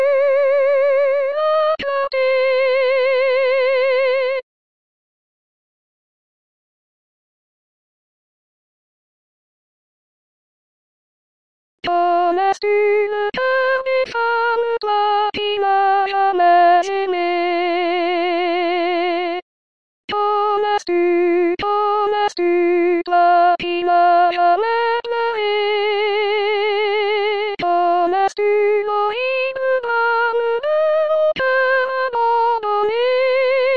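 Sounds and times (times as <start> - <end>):
soprano voice: 0.0 - 4.4, 11.8 - 19.4, 20.1 - 33.7.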